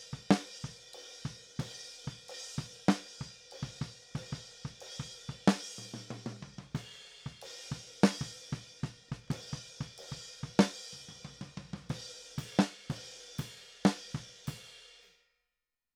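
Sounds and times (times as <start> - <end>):
snare drum: 0.1 - 0.5, 2.6 - 7.4, 8.0 - 13.0, 13.9 - 14.6.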